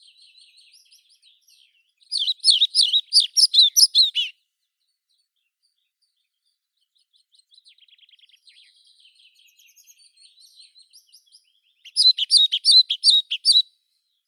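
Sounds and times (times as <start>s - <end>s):
pied flycatcher Ficedula hypoleuca calling: 2.2s - 4.3s, 11.9s - 13.6s.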